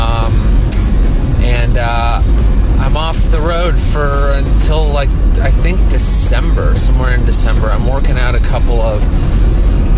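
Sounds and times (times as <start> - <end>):
car driving on road: 0.0 - 9.9
speech: 5.0 - 9.9.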